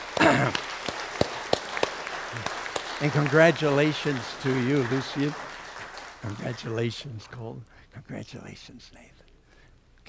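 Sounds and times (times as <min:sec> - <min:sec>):
church congregation applauding: 0:00.0 - 0:07.6
speech: 0:03.0 - 0:05.5, 0:06.2 - 0:09.1.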